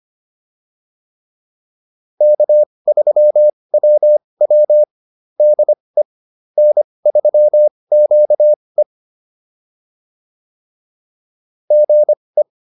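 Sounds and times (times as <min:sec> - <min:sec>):
morse code QSO practice: 0:02.2 - 0:05.8, 0:06.6 - 0:08.6, 0:11.7 - 0:12.2.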